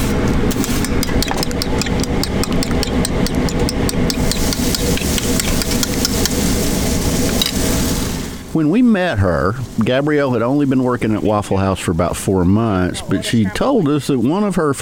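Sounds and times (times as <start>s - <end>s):
metal spatula tapping and scraping: 0.5s - 7.7s
hash browns sizzling on a flat top grill: 1.9s - 8.5s
speech: 8.6s - 14.8s.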